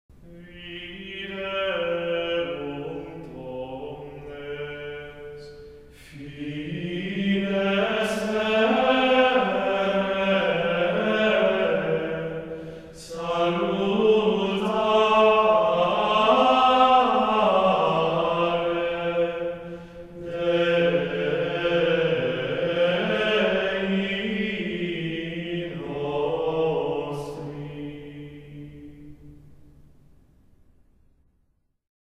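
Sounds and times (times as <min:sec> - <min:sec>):
Gregorian chant for Mass Communion: 0:00.2 - 0:29.5.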